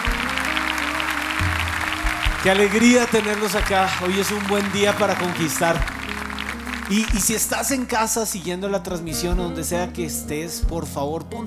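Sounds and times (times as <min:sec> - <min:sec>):
audience applause: 0:00.0 - 0:08.2
speech: 0:02.4 - 0:06.0, 0:06.9 - 0:11.4.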